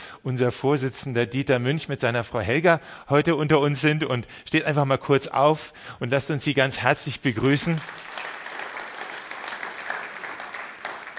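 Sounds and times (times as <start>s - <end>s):
speech: 0.2s - 8.3s
audience applause: 7.7s - 11.1s.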